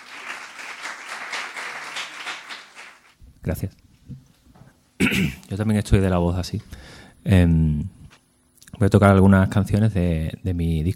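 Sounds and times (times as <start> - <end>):
audience applause: 0.0 - 3.2
speech: 3.4 - 4.2, 5.1 - 8.0, 8.8 - 10.9.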